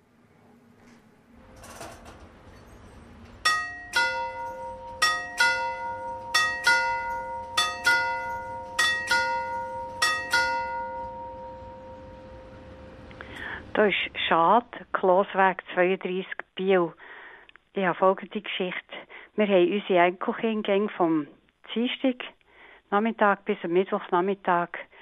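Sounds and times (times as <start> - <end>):
historic railway station bell ringing: 1.4 - 13.7
speech: 13.8 - 17.0, 17.8 - 18.8, 19.4 - 24.9.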